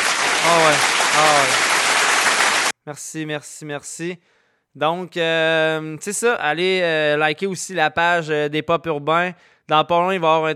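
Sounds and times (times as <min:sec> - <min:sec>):
crowd applause: 0:00.0 - 0:02.7
speech: 0:00.5 - 0:01.6, 0:02.9 - 0:10.5.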